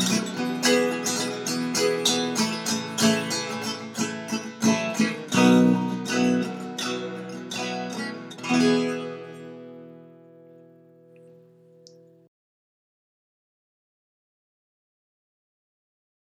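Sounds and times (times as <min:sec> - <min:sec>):
guitar playing a niggun melody: 0:00.0 - 0:12.3.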